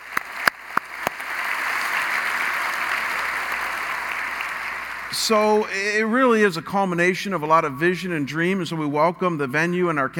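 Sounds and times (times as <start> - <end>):
audience at a simulcast church campus applauding: 0.0 - 5.2
speech: 5.1 - 10.1.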